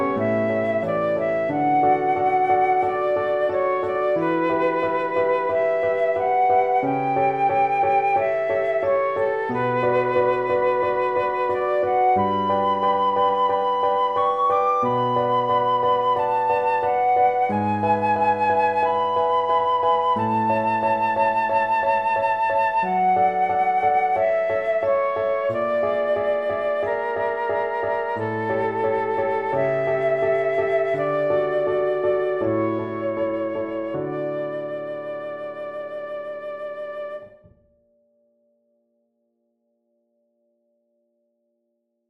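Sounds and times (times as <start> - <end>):
flute in a duet in D major: 0.0 - 37.6
piano in a duet in D major: 0.0 - 38.2.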